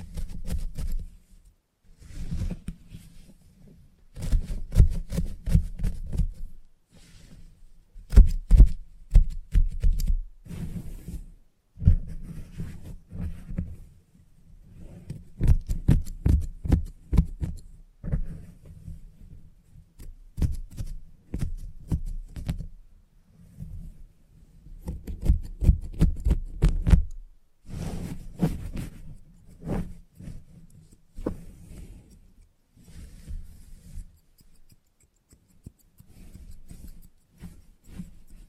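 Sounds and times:
soft rubbing and handling noise: 0.0 - 38.4
haircut scissors snipping: 34.2 - 37.2.

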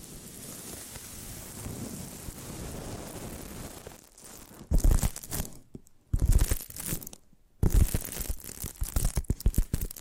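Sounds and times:
tapping and scratching: 6.2 - 10.0.

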